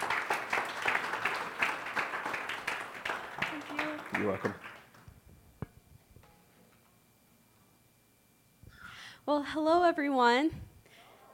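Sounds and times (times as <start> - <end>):
audience applause for a young woman coming up to speak: 0.0 - 5.1
speech: 4.2 - 4.7, 9.3 - 10.7.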